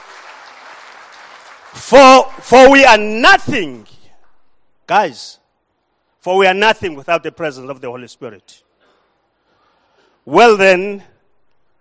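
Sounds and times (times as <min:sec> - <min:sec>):
audience applause: 0:00.0 - 0:01.9
speech: 0:01.7 - 0:04.0, 0:04.9 - 0:05.4, 0:06.2 - 0:08.6, 0:10.3 - 0:11.1.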